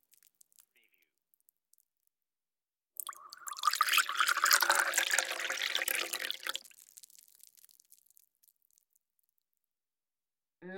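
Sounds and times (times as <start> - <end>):
teapot pouring: 3.0 - 8.8.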